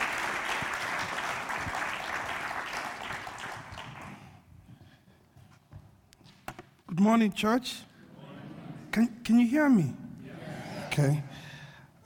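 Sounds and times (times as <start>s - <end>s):
church audience applause welcoming a worship leader to the stage: 0.0s - 4.4s
speech: 7.0s - 7.9s, 9.0s - 10.0s, 11.0s - 11.4s.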